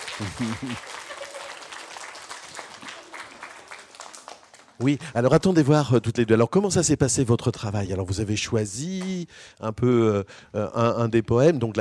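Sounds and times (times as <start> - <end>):
audience applause: 0.0 - 5.1
speech: 0.2 - 1.0, 4.8 - 11.7.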